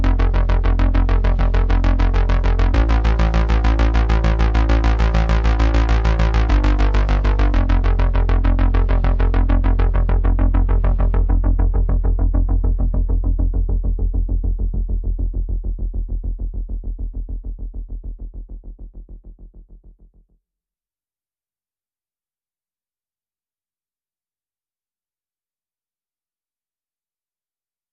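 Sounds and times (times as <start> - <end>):
bass: 0.0 - 20.3.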